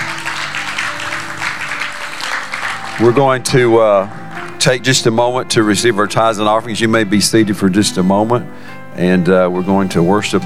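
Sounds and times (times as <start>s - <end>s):
audience clapping hands: 0.0s - 4.9s
speech: 3.0s - 10.4s.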